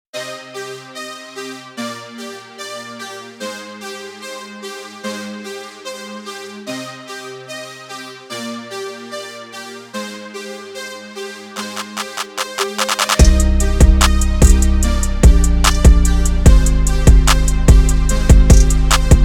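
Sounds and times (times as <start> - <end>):
music beat: 11.6 - 19.2.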